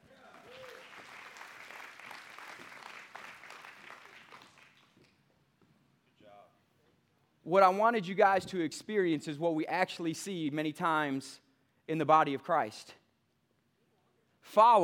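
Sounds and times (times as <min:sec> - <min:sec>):
audience clapping: 0:00.0 - 0:05.2
speech: 0:07.5 - 0:13.0, 0:14.5 - 0:14.8.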